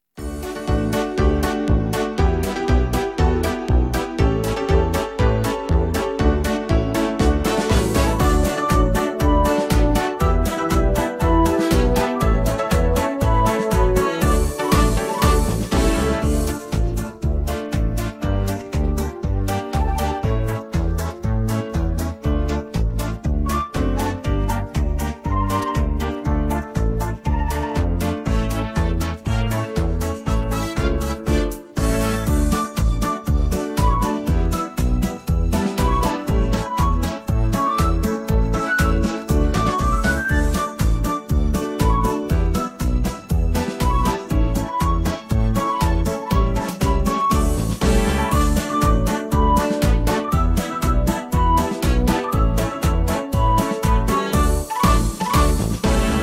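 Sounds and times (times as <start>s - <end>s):
instrumental music: 0.0s - 56.2s.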